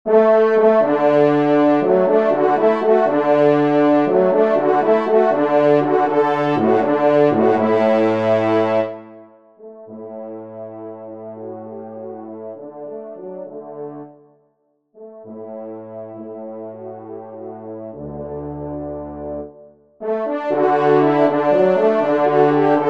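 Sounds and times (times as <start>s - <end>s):
horn: 0.1s - 14.3s, 15.0s - 22.8s.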